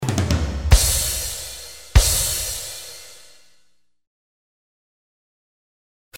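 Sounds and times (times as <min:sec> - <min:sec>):
cymbals: 0:00.0 - 0:03.5.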